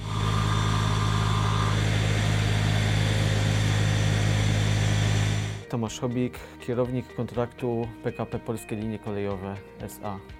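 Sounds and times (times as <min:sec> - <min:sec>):
heavy machinery engine drone at a railway construction site: 0:00.0 - 0:05.6
speech: 0:05.8 - 0:10.3.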